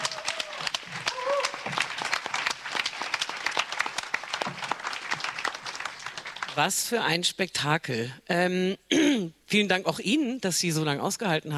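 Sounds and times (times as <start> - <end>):
audience applause: 0.0 - 6.7
speech: 6.6 - 11.5.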